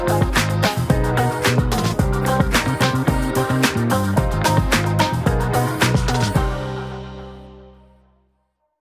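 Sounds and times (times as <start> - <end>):
cool guitars: 0.0 - 7.0
funky bass: 0.0 - 7.8
glamour electro pop music: 0.0 - 7.9.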